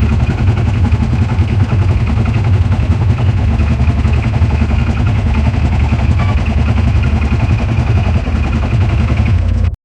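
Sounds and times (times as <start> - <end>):
V locomotive: 0.0 - 9.8.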